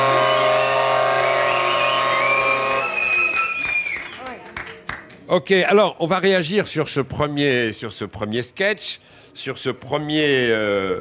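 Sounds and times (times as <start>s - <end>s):
audience applause and cheering: 0.0s - 4.7s
speech: 5.3s - 11.0s.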